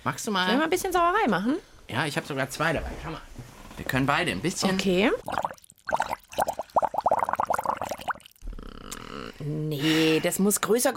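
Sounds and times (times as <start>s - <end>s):
speech: 0.0s - 5.5s, 10.2s - 10.9s
air blown through a straw into water: 5.2s - 9.0s.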